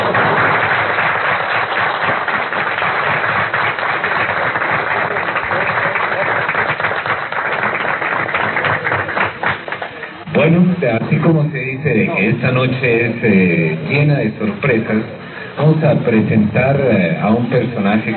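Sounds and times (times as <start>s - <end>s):
audience applause: 0.0s - 10.2s
speech: 10.8s - 18.1s.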